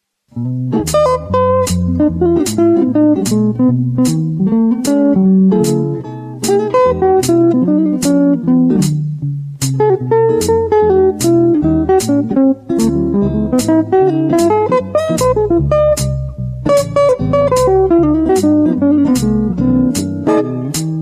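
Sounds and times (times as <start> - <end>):
swing music: 0.4 - 21.0.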